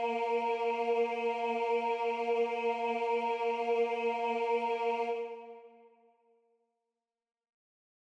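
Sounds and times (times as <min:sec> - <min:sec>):
tenor singing: 0:00.0 - 0:05.6.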